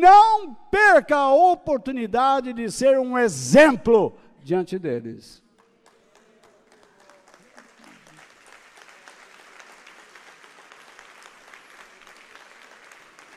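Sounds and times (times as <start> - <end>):
speech: 0.0 - 5.4
audience applause: 5.6 - 13.3.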